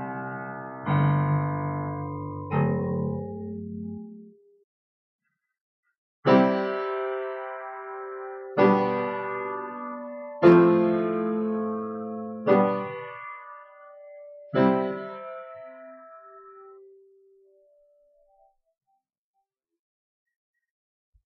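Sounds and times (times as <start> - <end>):
piano strings: 0.0 - 4.1, 6.3 - 17.0.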